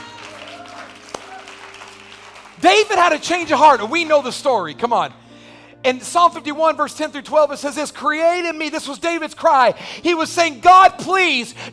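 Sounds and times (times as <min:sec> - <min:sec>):
audience applause: 0:00.0 - 0:04.7
speech: 0:02.6 - 0:05.2, 0:05.8 - 0:11.7.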